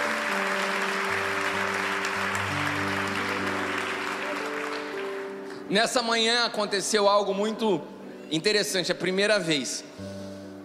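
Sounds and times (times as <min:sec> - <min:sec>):
audience applause: 0:00.0 - 0:05.7
speech: 0:05.7 - 0:10.1.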